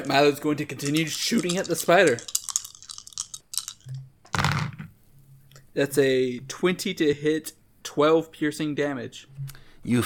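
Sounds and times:
speech: 0:00.0 - 0:02.4, 0:05.8 - 0:10.0
dice dropping: 0:00.0 - 0:04.9.

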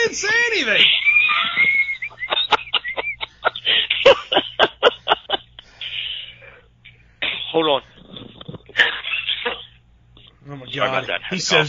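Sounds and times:
speech: 0:00.6 - 0:01.0, 0:11.1 - 0:11.6
laughter: 0:00.6 - 0:06.3, 0:08.7 - 0:09.7
hard cough: 0:08.7 - 0:09.8.

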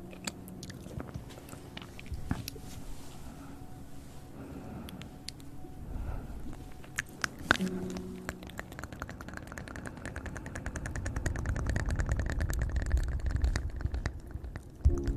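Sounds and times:
low rumbling swell: 0:00.0 - 0:15.1
wet mouth clicks, smacks and chewing-like noises: 0:06.9 - 0:14.9.

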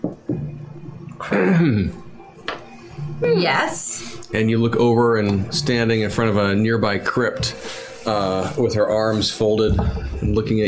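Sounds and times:
person clearing throat during a fantasy tabletop roleplaying game: 0:01.2 - 0:02.0
speech: 0:01.2 - 0:02.0, 0:03.2 - 0:10.6.

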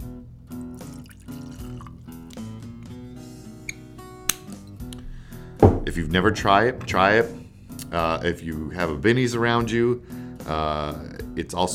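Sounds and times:
whiskey pouring into a glass: 0:00.5 - 0:04.4
speech: 0:06.0 - 0:11.7.

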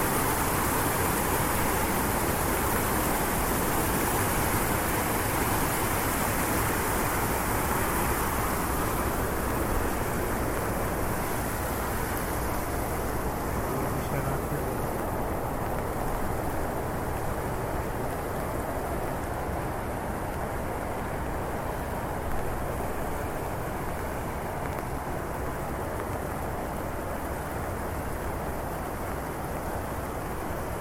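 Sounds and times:
rain in the streets of Switzerland: 0:00.0 - 0:30.8.

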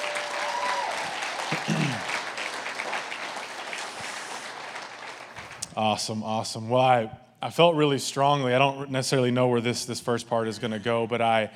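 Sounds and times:
audience applause welcoming guests: 0:00.0 - 0:05.7
speech: 0:05.8 - 0:11.5.

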